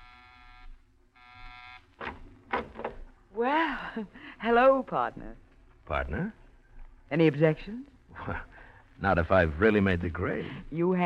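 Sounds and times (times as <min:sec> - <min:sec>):
apartment door buzzer: 0:00.0 - 0:02.2
sharp noisy clunks: 0:02.0 - 0:03.1
speech: 0:03.4 - 0:06.4, 0:07.1 - 0:11.0.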